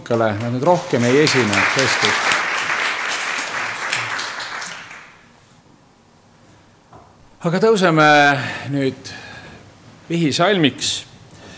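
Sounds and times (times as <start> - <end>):
audience applauding in church: 0.0 - 5.3
speech: 0.1 - 2.3, 7.4 - 9.2, 10.1 - 11.1.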